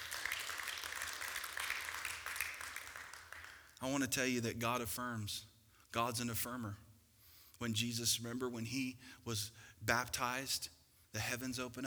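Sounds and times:
audience applause: 0.0s - 3.8s
speech: 3.8s - 6.8s, 7.6s - 11.8s.

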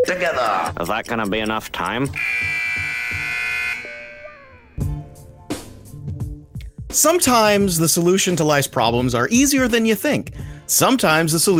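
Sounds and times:
speech: 0.1s - 2.7s, 6.9s - 11.5s
two-minute warning buzzer: 2.1s - 4.8s.

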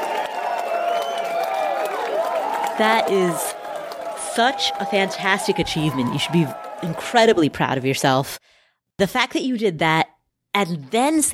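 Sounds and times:
round of applause sound effect: 0.0s - 8.0s
speech: 2.8s - 3.5s, 4.4s - 8.4s, 9.0s - 10.0s, 10.6s - 11.3s.

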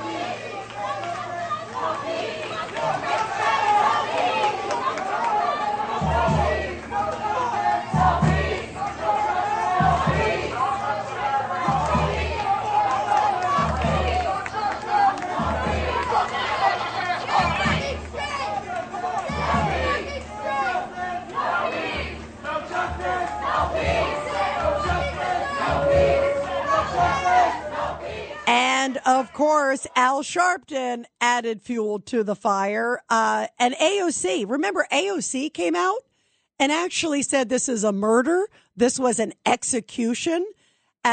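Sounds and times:
protest crowd chanting slogans: 0.0s - 30.0s
shouting voices: 0.0s - 30.1s
low thumping beats: 5.8s - 29.0s
speech: 29.6s - 41.1s.

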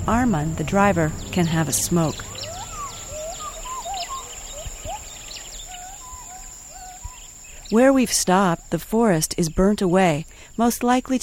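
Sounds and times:
speech: 0.0s - 2.3s, 7.7s - 11.2s
gibbons calling in distant forest: 0.7s - 8.8s.

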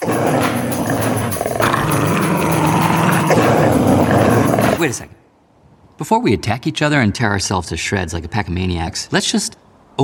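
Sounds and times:
dogs growling, yipping and whimpering while squabbling over a bag of garbage: 0.0s - 5.0s
speech: 4.8s - 5.2s, 6.0s - 10.0s.

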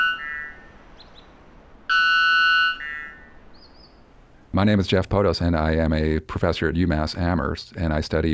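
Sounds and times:
loud bird song: 0.2s - 1.4s, 2.7s - 4.1s
speech: 4.6s - 8.3s.

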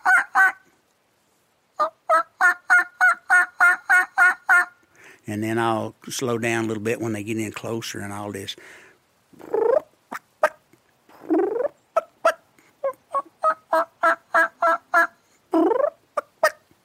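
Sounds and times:
turkey calls made with a diaphragm mouth call: 0.0s - 0.6s, 1.8s - 4.7s, 9.4s - 16.7s
speech: 5.3s - 8.8s.

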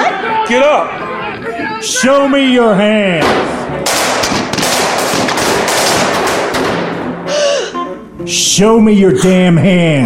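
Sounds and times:
speech: 0.5s - 1.1s, 1.8s - 4.2s, 8.3s - 10.0s
rapid gunfire during a drama scene of a house break-in: 3.2s - 7.2s.

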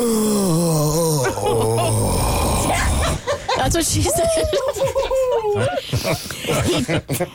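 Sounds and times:
person imitating a moan: 0.0s - 3.2s
laughter: 1.2s - 7.3s
speech: 3.6s - 7.3s.

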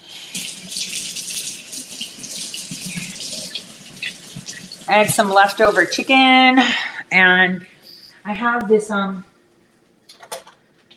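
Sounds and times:
washing hands under running tap: 0.0s - 6.4s
speech: 4.9s - 9.3s.

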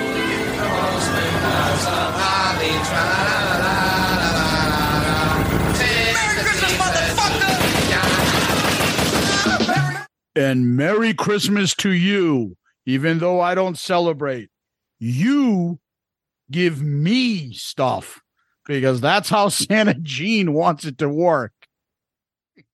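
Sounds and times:
laughter: 0.1s - 5.7s, 6.4s - 10.1s
drive-by shooting automatic gunfire: 7.2s - 9.8s
speech: 10.4s - 15.8s, 16.5s - 21.6s.

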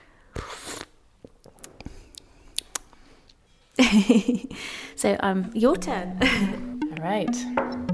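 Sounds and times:
person slurping tea: 0.4s - 1.0s
speech: 3.9s - 7.8s.

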